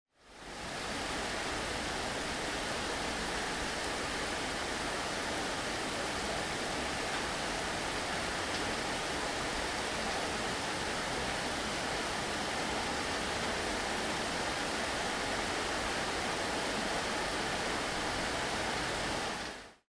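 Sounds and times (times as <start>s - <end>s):
tropical rain in the jungle: 0.2s - 19.8s.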